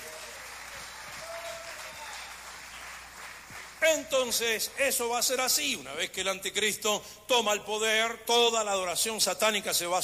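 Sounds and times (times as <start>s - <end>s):
audience applause: 0.0s - 3.8s
speech: 3.8s - 10.0s.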